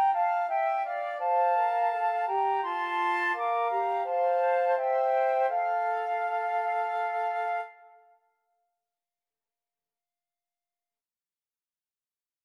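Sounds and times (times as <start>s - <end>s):
flute trio playing: 0.0s - 8.0s.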